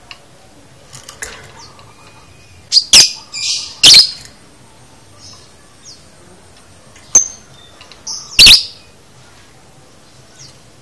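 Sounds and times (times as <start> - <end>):
lovebird piercing squeaks, chirp and high twitters: 1.6 - 4.2, 8.1 - 8.8.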